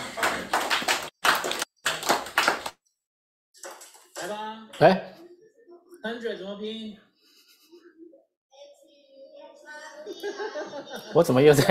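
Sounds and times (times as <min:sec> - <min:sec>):
person clapping: 0:00.0 - 0:02.8
speech: 0:04.8 - 0:05.1, 0:06.0 - 0:07.1, 0:10.0 - 0:11.7
laughter: 0:10.0 - 0:11.7.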